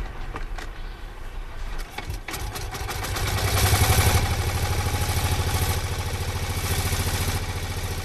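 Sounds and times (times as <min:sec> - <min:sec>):
1901 de Dion Bouton single-cylinder car engine starting: 0:01.8 - 0:08.0.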